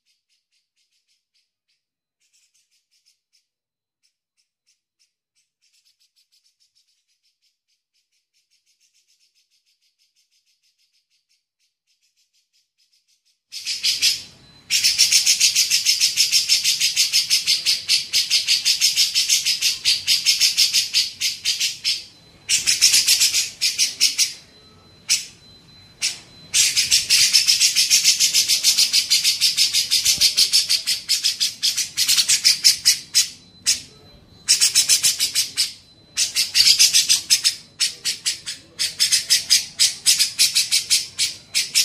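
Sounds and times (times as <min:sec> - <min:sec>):
grey-cheeked bulbul harsh chattering: 0:13.5 - 0:41.8
faint high hum: 0:13.6 - 0:41.8.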